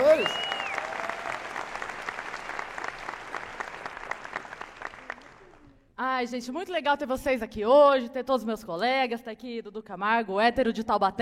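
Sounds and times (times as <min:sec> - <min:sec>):
audience applause: 0:00.0 - 0:05.8
speech: 0:06.2 - 0:11.2.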